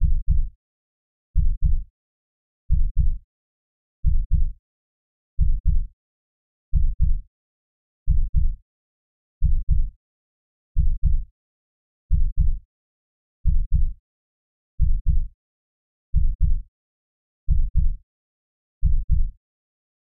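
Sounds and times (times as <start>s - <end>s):
heartbeat: 0.0s - 0.5s, 1.4s - 1.8s, 2.7s - 3.2s, 4.0s - 4.6s, 5.4s - 5.9s, 6.8s - 7.2s, 8.1s - 8.6s, 9.4s - 9.9s, 10.8s - 11.3s, 12.1s - 12.6s, 13.4s - 14.0s, 14.8s - 15.3s, 16.2s - 16.6s, 17.5s - 18.0s, 18.8s - 19.3s.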